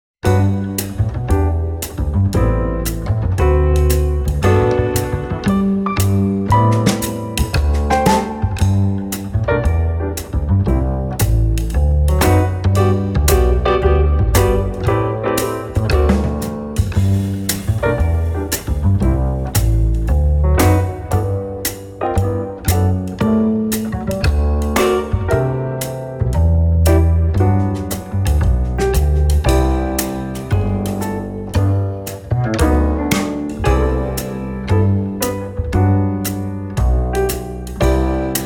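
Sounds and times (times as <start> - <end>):
mid-tempo swing music: 0.2 - 38.4.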